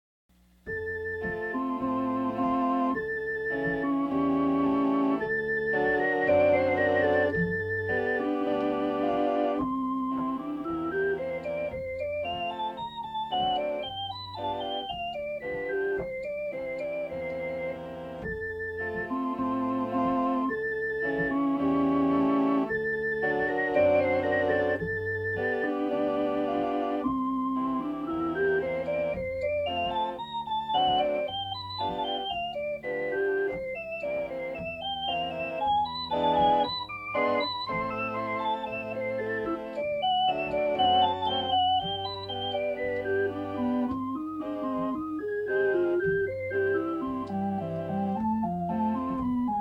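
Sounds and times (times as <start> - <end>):
peaceful melodic offertory music: 0.7 - 49.5.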